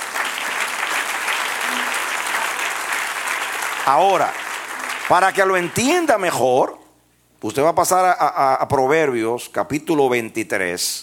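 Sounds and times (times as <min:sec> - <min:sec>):
audience applauding: 0:00.0 - 0:06.3
speech: 0:03.9 - 0:04.4, 0:05.1 - 0:06.8, 0:07.4 - 0:11.0.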